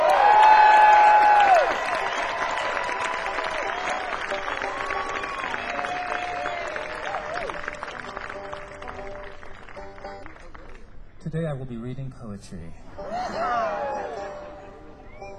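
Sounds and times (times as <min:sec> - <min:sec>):
audience applause welcoming a musician on stage: 0:00.0 - 0:10.8
crowd cheering: 0:00.0 - 0:10.8, 0:12.9 - 0:15.3
speech: 0:11.7 - 0:13.5.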